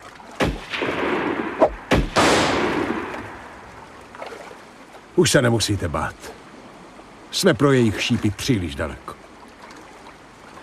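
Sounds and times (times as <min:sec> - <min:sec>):
gunshots: 0:00.4 - 0:03.4
speech: 0:05.2 - 0:06.4, 0:07.3 - 0:09.2.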